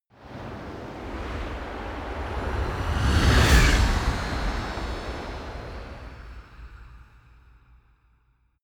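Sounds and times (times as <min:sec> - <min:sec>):
magical whoosh gust: 0:00.4 - 0:07.0.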